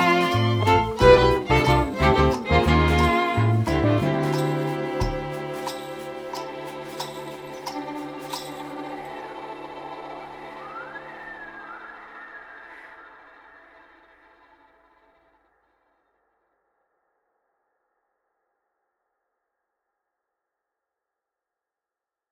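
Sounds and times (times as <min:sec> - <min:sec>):
instrumental music: 0:00.0 - 0:12.4.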